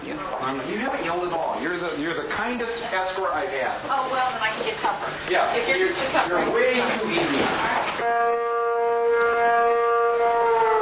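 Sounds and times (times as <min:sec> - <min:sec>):
speech: 0:00.5 - 0:08.5
town noon whistle siren wailing: 0:08.0 - 0:10.8.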